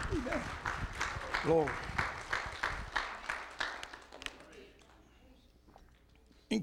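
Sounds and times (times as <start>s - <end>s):
audience clapping hands in praise: 0.0s - 5.0s
speech: 0.2s - 0.8s, 1.4s - 1.9s.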